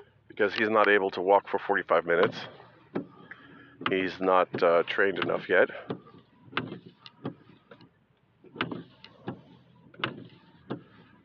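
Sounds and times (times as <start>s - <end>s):
speech: 0.4s - 3.1s, 3.8s - 6.0s
car windshield wipers sweeping: 0.4s - 11.2s.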